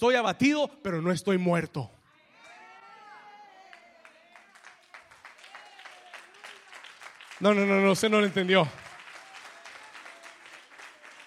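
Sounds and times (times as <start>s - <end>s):
speech: 0.0s - 2.0s, 7.4s - 8.8s
audience applause: 3.0s - 11.2s.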